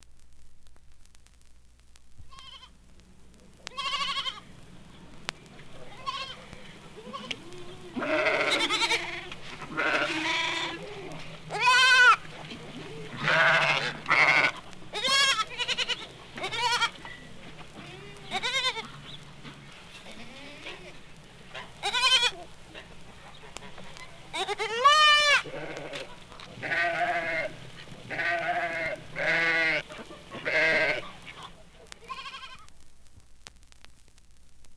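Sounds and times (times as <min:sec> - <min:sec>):
sheep and goats bleating: 0:03.6 - 0:04.5, 0:05.8 - 0:19.2, 0:19.9 - 0:32.7.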